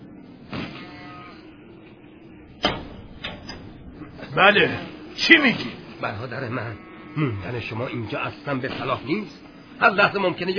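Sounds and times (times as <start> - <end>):
door opening: 2.4 - 5.8
speech: 4.4 - 10.5.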